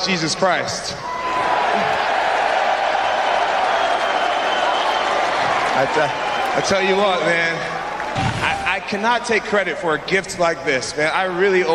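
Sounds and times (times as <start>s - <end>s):
speech: 0.0s - 1.1s, 5.8s - 11.7s
arena crowd cheering: 0.9s - 10.1s.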